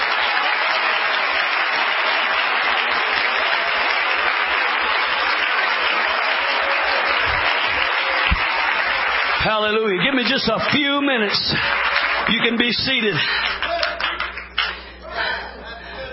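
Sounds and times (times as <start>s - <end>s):
audience clapping hands in praise: 0.0s - 14.9s
speech: 9.5s - 13.5s
laughter: 13.2s - 16.1s.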